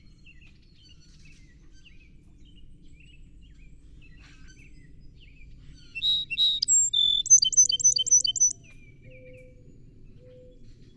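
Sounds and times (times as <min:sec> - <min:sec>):
song sparrow singing: 0:05.8 - 0:08.6.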